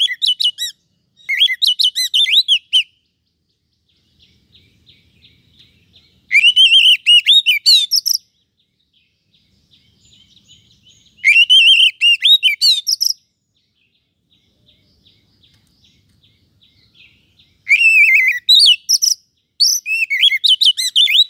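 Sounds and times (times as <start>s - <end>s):
Oriental magpie-robin singing rich varied whistles and harsh chattering notes: 0.0s - 3.0s, 5.6s - 8.4s, 10.3s - 13.3s, 16.8s - 21.2s.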